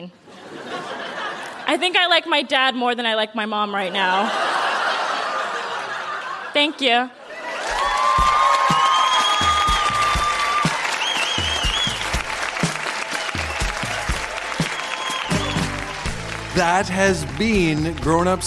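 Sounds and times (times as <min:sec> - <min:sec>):
speech: 0:00.0 - 0:00.3, 0:01.7 - 0:04.5, 0:06.6 - 0:07.2, 0:16.6 - 0:18.4
laughter: 0:00.2 - 0:01.8, 0:03.9 - 0:08.0
audience applause: 0:07.4 - 0:18.4.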